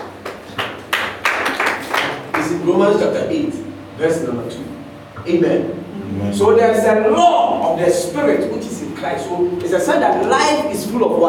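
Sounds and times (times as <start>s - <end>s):
audience clapping: 0.0s - 2.6s
speech: 2.6s - 11.2s.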